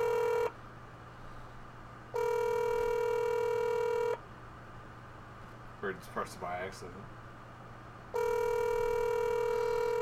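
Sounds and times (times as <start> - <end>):
phone calling tone: 0.0 - 0.5, 2.2 - 4.2, 8.2 - 10.0.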